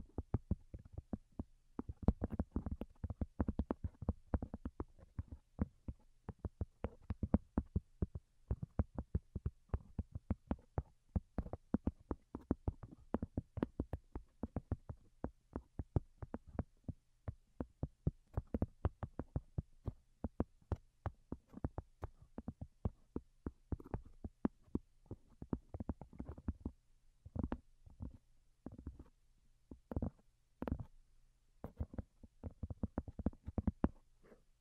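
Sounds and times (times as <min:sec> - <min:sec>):
soft delicate tapping: 0:01.8 - 0:29.1, 0:29.7 - 0:30.9, 0:31.6 - 0:34.4.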